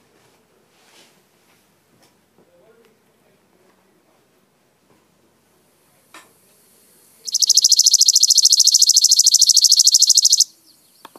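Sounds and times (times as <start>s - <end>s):
Chipping Sparrow song: 7.0s - 11.1s.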